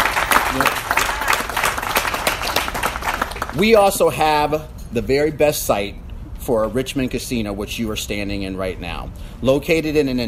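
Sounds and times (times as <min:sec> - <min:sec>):
audience clapping: 0:00.0 - 0:03.8
speech: 0:03.6 - 0:10.2.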